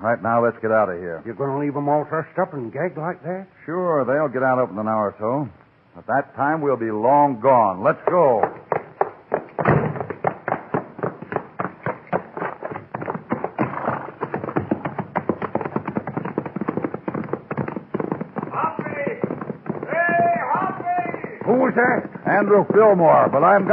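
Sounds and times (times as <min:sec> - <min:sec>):
speech: 0:00.0 - 0:08.6, 0:22.4 - 0:23.7
horses galloping, one named Topper: 0:06.6 - 0:23.7.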